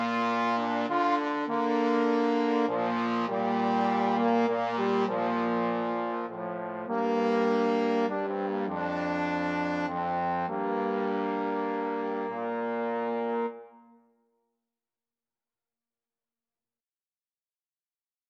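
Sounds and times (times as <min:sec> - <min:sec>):
trombone trio playing a hymn: 0:00.0 - 0:13.7.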